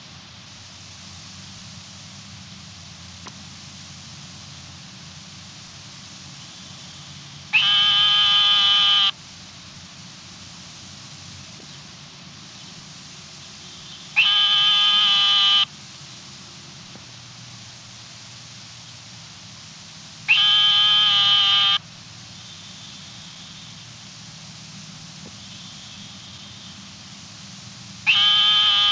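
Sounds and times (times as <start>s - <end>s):
narrow-mouthed frog of the family Microhylidae giving a long steady tone: 6.0s - 9.2s, 13.3s - 16.7s, 20.2s - 28.9s.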